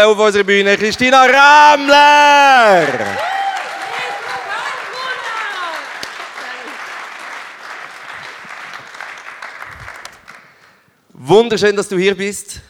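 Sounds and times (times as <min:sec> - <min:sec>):
speech: 0:00.0 - 0:03.3, 0:11.2 - 0:12.6
audience applause: 0:00.0 - 0:10.8
whoops and cheers: 0:01.6 - 0:05.9.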